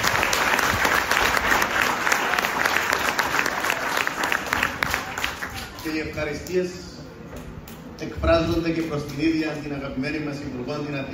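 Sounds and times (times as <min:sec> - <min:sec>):
applause: 0:00.0 - 0:06.5
speech: 0:05.9 - 0:06.9, 0:08.0 - 0:11.1.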